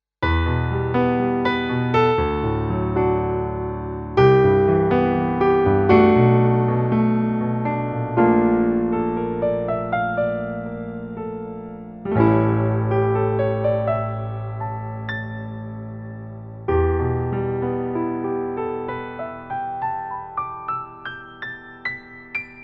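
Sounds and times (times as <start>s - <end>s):
Kawai MP7SE SK 5 Grand digital piano: 0.2s - 22.6s.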